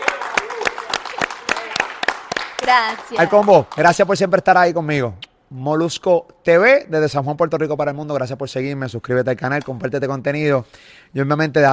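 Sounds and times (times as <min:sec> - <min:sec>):
rhythmic audience clapping: 0:00.0 - 0:04.3
speech: 0:02.7 - 0:11.7.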